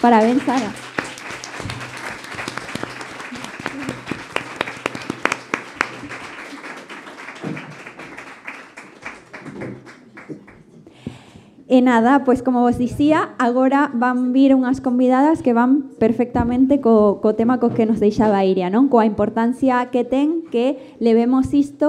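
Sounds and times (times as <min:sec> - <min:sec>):
speech: 0:00.0 - 0:00.8, 0:11.7 - 0:21.8
audience applause: 0:00.0 - 0:10.7.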